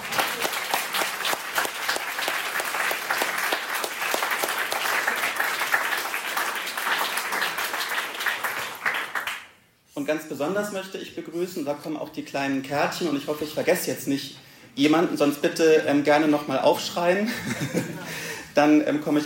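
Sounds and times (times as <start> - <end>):
audience applause: 0.0 - 9.4
speech: 10.1 - 19.2
laughter: 17.2 - 18.5.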